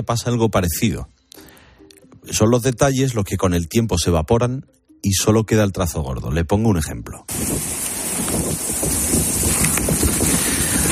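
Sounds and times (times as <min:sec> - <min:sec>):
speech: 0:00.0 - 0:01.2, 0:02.3 - 0:07.8
lava of Cumbre Vieja volcano crackling during eruption in La Palma: 0:07.3 - 0:10.9.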